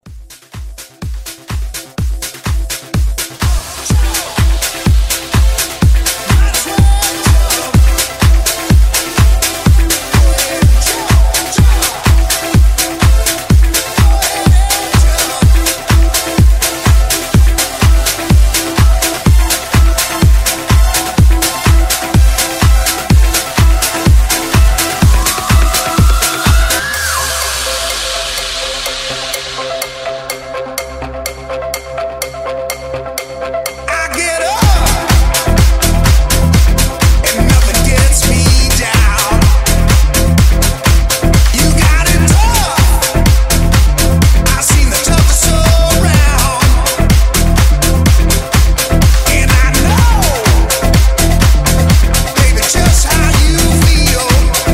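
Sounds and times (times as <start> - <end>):
funk music: 0.0 - 54.7.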